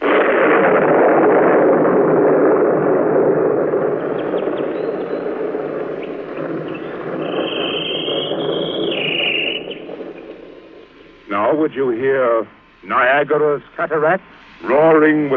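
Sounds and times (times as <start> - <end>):
thunder sound effect: 0.0 - 12.2
bird answering thunder: 4.0 - 11.4
speech: 11.6 - 15.3.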